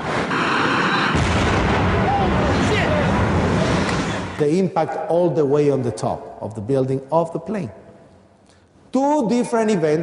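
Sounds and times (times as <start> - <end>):
generator explosion boom and rumbling roar: 0.0 - 4.4
speech: 4.4 - 7.8, 8.9 - 10.0.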